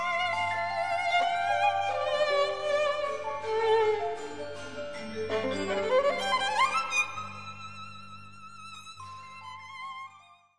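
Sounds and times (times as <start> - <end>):
Chinese concerto: 0.2 - 7.3.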